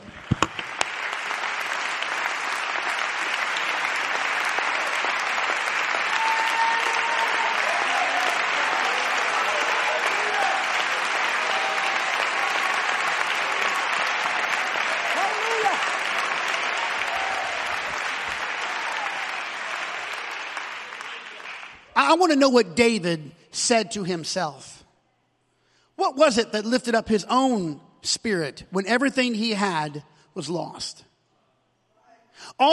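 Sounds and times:
audience clapping hands: 0:00.0 - 0:22.2
speech: 0:22.1 - 0:24.8, 0:26.0 - 0:31.1, 0:32.4 - 0:32.7.

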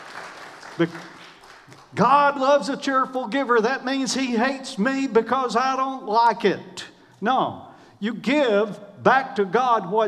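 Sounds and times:
audience applause: 0:00.0 - 0:02.0
speech: 0:00.8 - 0:10.0.

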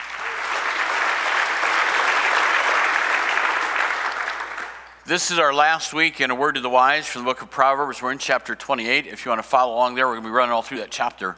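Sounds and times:
church congregation clapping hands: 0:00.0 - 0:05.0
speech: 0:05.1 - 0:11.3.

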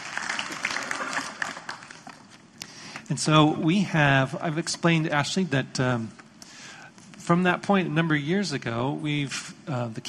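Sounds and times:
audience applause welcoming a guest: 0:00.0 - 0:02.4
speech: 0:03.1 - 0:06.2, 0:07.3 - 0:10.0.

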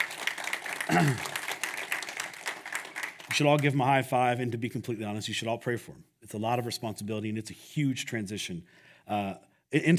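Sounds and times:
audience clapping: 0:00.0 - 0:04.0
speech: 0:00.9 - 0:01.4, 0:03.4 - 0:09.9.

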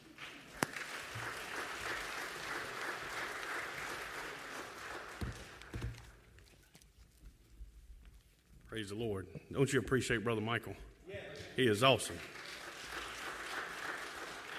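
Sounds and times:
audience clapping: 0:00.0 - 0:06.1, 0:11.6 - 0:14.5
speech: 0:08.8 - 0:10.9, 0:11.6 - 0:12.4.

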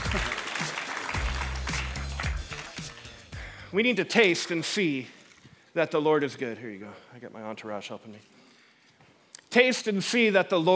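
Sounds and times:
audience clapping for volunteer chocolate tasters: 0:00.0 - 0:03.4
speech: 0:03.7 - 0:05.2, 0:05.8 - 0:08.4, 0:09.5 - 0:10.7.

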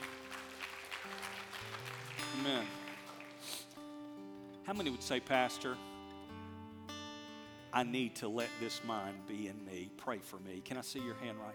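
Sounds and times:
audience clapping: 0:00.0 - 0:03.9
speech: 0:02.4 - 0:02.8, 0:04.7 - 0:05.9, 0:07.7 - 0:11.5.

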